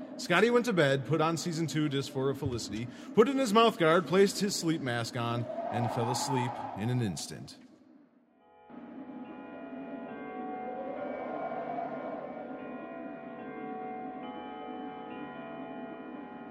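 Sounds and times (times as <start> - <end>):
speech: 0.2 - 7.6
church bells ringing: 9.2 - 16.4.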